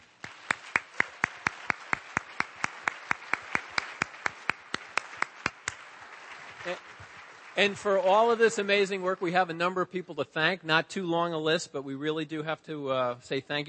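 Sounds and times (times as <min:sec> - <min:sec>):
crisp evenly spaced applause claps: 0:00.0 - 0:09.6
speech: 0:06.6 - 0:07.0, 0:07.6 - 0:13.6.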